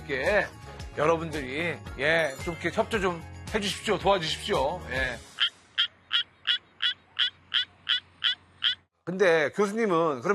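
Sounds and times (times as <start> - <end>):
speech: 0.1 - 5.3, 9.1 - 10.3
Suwon treefrog calling: 5.3 - 8.9.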